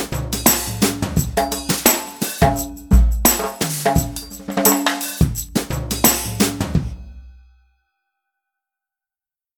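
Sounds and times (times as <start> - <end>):
studio drums: 0.0 - 7.4.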